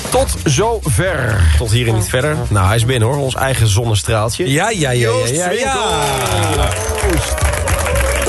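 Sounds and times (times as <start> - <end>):
speech: 0.1 - 7.6
loud applause: 5.6 - 8.2.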